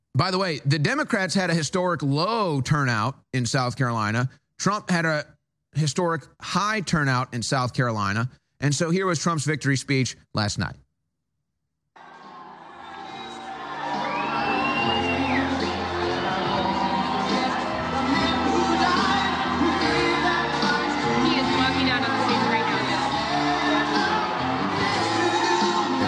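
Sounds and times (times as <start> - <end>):
speech: 0.2 - 10.8
large rally crowd cheering: 12.0 - 26.0.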